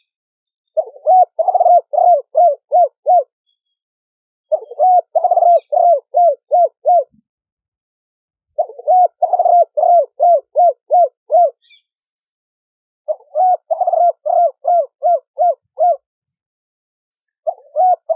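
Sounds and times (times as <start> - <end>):
spotted dove cooing: 0.8 - 3.3, 4.5 - 7.2, 8.6 - 11.7, 13.1 - 16.0, 17.4 - 18.1.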